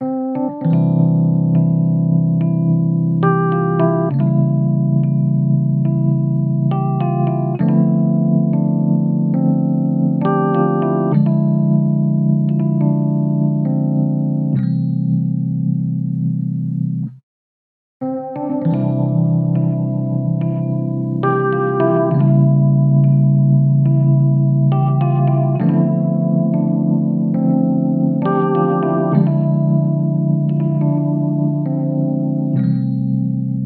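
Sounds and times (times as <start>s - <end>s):
smooth electric piano: 0.0s - 17.2s, 18.0s - 33.6s.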